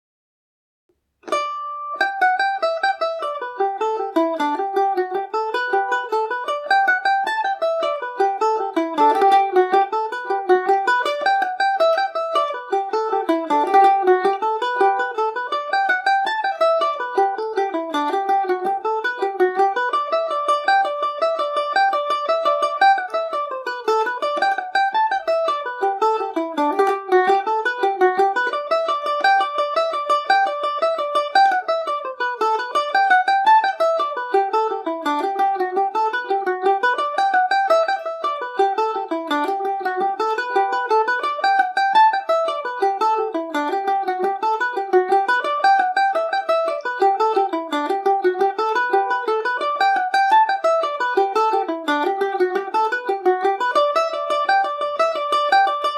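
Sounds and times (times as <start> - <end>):
mandolin playing a tune in G major: 1.0 - 55.9.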